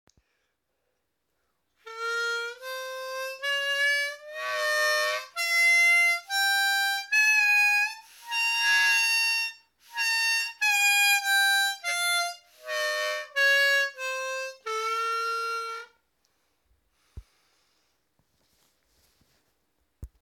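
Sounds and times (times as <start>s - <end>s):
harmonica in 11th position: 1.8s - 16.0s.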